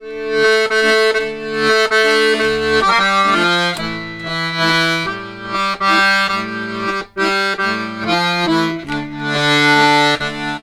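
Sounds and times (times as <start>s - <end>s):
accordions: 0.0s - 10.6s.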